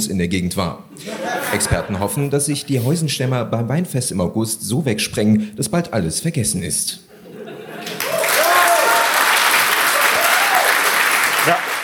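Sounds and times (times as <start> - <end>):
speech: 0.0 - 7.1
laughter: 1.0 - 2.9, 7.1 - 8.3
audience applause: 7.8 - 11.8.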